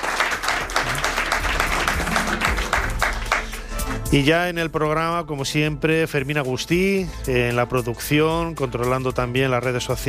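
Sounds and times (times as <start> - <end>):
audience applause: 0.0 - 3.7
speech: 4.1 - 10.0.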